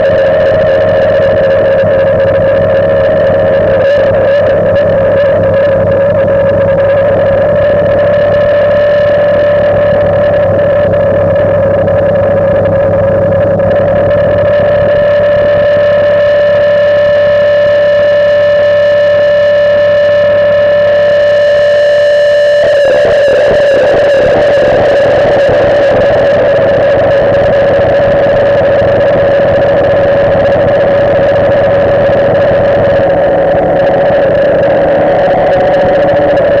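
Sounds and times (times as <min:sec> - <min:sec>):
inharmonic overtones: 0:00.0 - 0:36.5.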